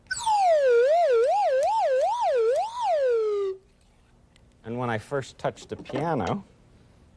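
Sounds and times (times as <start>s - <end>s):
slide whistle played clumsily: 0.0s - 3.6s
speech: 5.0s - 6.5s.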